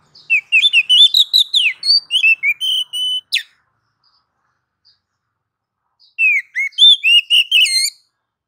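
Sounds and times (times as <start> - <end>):
female oriental magpie-robin calling to a male: 0.2 - 3.5, 6.2 - 8.1.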